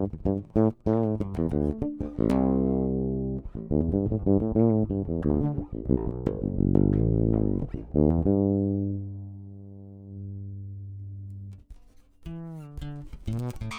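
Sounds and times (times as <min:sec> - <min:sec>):
piezo bass: 0:00.0 - 0:13.7.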